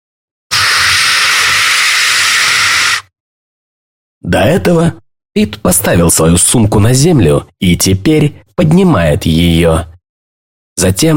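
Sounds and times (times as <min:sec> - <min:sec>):
voice imitating a deflating tyre's hiss: 0:00.5 - 0:03.0
speech: 0:04.3 - 0:09.9, 0:10.8 - 0:11.1.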